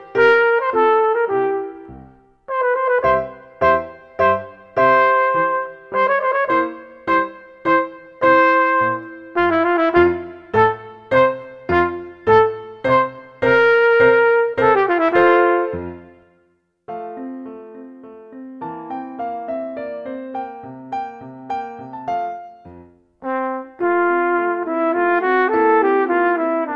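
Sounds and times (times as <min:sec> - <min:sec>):
trumpet minuet and trio with accompaniment: 0:00.0 - 0:16.6, 0:23.2 - 0:26.7.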